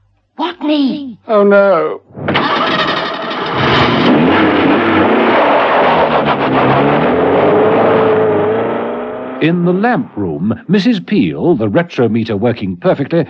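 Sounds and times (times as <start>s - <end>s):
speech: 0.6s - 2.6s, 9.4s - 13.2s
car engine starting: 2.2s - 10.6s.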